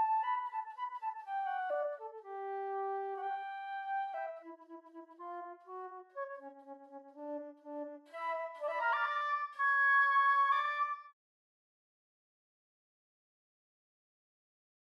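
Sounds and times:
flute: 0.0s - 11.2s.

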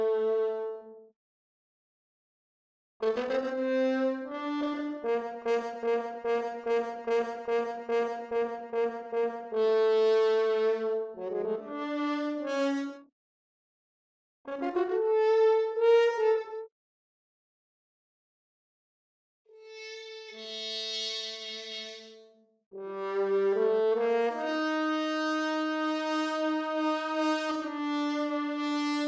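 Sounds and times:
horn: 0.0s - 1.0s, 3.0s - 13.0s, 14.5s - 16.7s, 19.7s - 29.0s.

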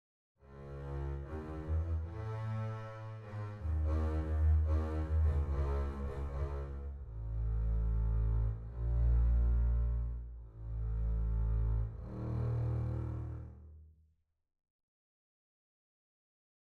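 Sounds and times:
double basses playing: 0.5s - 13.6s.

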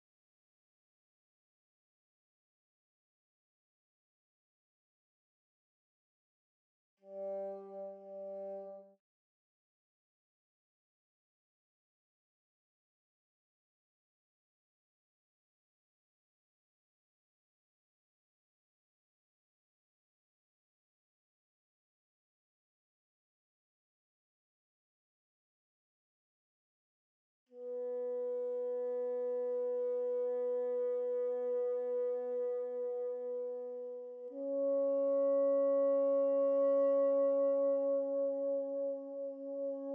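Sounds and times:
bassoon: 7.0s - 9.0s, 27.6s - 39.9s.

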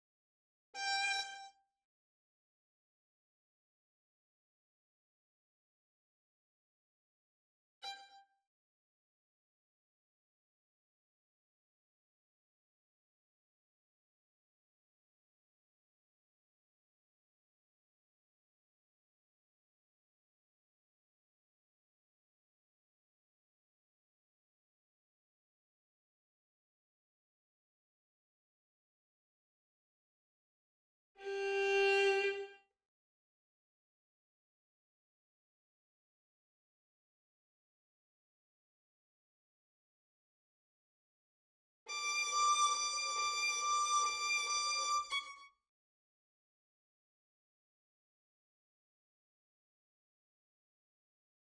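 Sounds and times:
violin: 0.8s - 1.6s, 31.2s - 32.7s, 41.9s - 45.5s.

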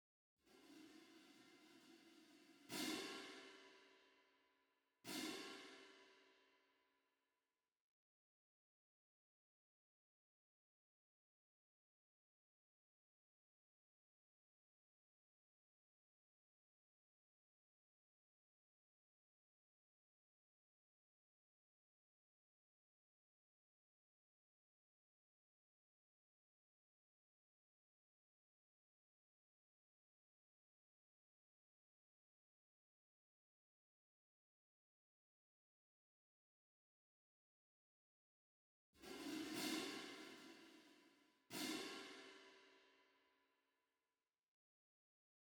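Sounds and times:
cymbals: 0.6s - 3.9s, 5.1s - 6.0s, 39.0s - 40.9s, 41.5s - 42.6s.

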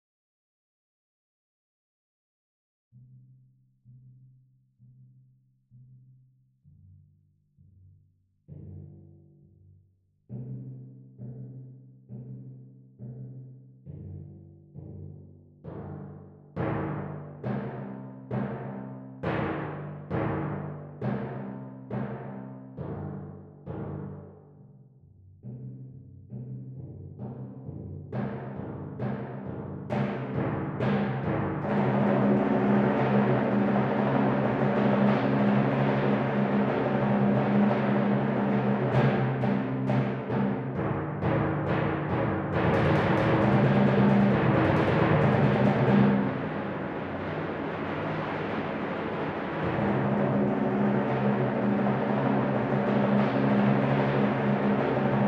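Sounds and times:
timpani: 15.7s - 24.3s, 27.2s - 55.2s.

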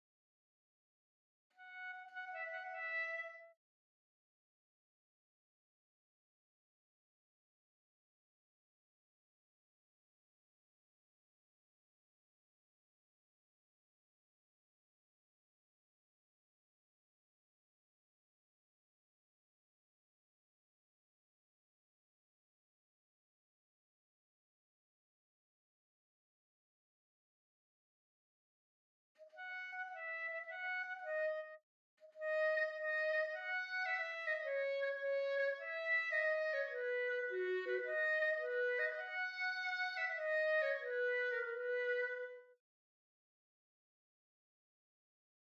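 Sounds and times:
clarinet: 1.5s - 3.6s, 29.2s - 42.6s.

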